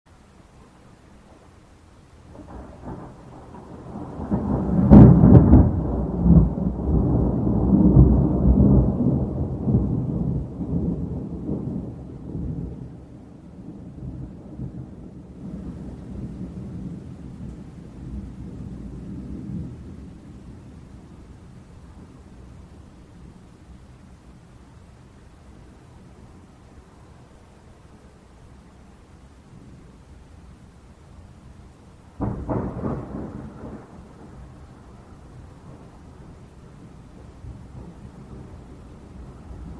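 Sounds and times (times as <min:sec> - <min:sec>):
dramatic thunderstorm in the early hours: 0:02.3 - 0:23.9, 0:31.6 - 0:39.7.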